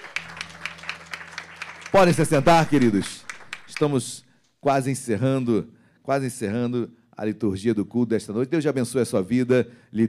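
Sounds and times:
audience clapping rhythmically: 0:00.0 - 0:04.3
speech: 0:01.9 - 0:03.2, 0:03.8 - 0:10.0.

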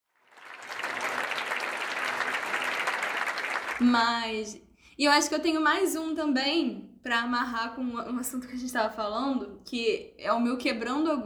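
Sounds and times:
person clapping: 0:00.3 - 0:03.9
speech: 0:03.8 - 0:11.2.

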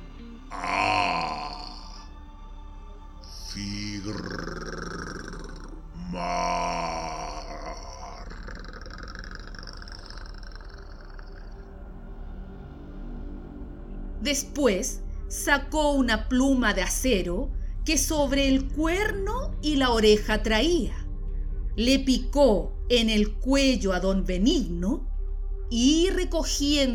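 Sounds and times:
person joyful grunting: 0:00.5 - 0:02.1, 0:03.3 - 0:11.6
speech: 0:03.6 - 0:04.5, 0:14.2 - 0:21.0, 0:21.8 - 0:25.0, 0:25.7 - 0:26.9.

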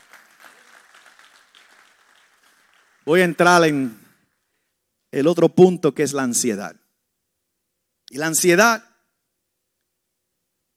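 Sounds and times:
audience applauding: 0:00.0 - 0:04.5
speech: 0:03.1 - 0:04.0, 0:05.1 - 0:06.8, 0:08.1 - 0:08.9.

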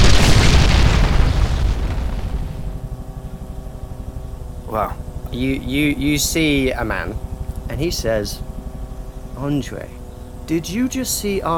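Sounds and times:
house exploding: 0:00.0 - 0:02.8
speech: 0:04.8 - 0:08.5, 0:09.4 - 0:11.5.

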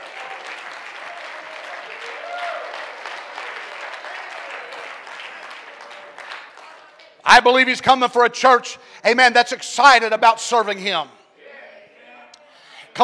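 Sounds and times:
audience clapping: 0:00.0 - 0:07.2
speech: 0:07.3 - 0:11.2.

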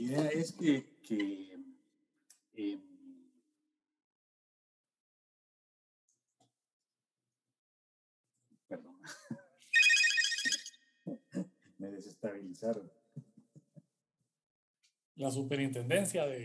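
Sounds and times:
speech: 0:00.0 - 0:01.6, 0:02.6 - 0:02.9, 0:11.8 - 0:13.0, 0:15.2 - 0:16.4
electronic phone ringtone signalling an incoming call: 0:09.7 - 0:10.8.

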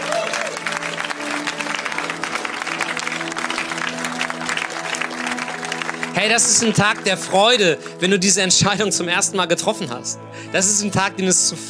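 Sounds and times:
audience applause: 0:00.0 - 0:07.6
speech: 0:06.2 - 0:11.6.

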